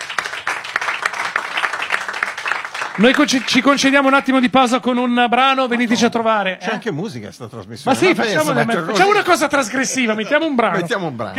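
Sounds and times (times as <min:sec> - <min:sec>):
studio audience applause on a radio show: 0:00.0 - 0:04.2
speech: 0:03.0 - 0:11.3
laughter: 0:05.4 - 0:06.4, 0:08.2 - 0:11.3.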